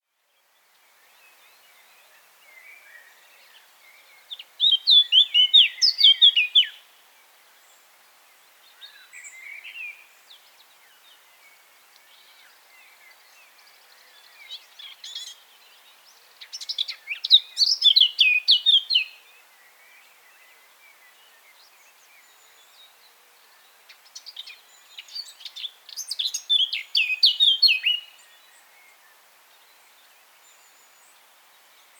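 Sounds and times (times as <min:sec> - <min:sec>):
Eurasian blackcap singing: 0:04.2 - 0:06.8, 0:16.4 - 0:19.2, 0:24.2 - 0:28.2.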